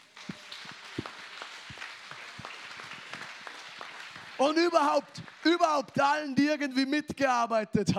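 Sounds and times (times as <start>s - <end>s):
audience applause: 0.0s - 6.3s
speech: 4.4s - 7.9s.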